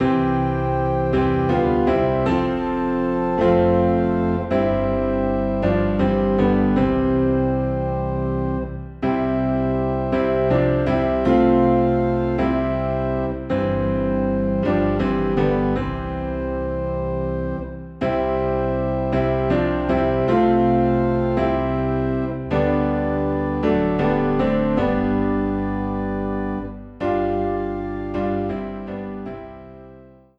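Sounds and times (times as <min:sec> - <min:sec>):
low organ in C: 0:00.0 - 0:30.3
low piano in C: 0:00.0 - 0:30.3.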